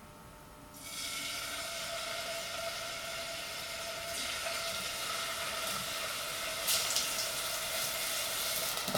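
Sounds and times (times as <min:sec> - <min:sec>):
chicken meat sizzling in a hot pan: 0:00.8 - 0:08.9.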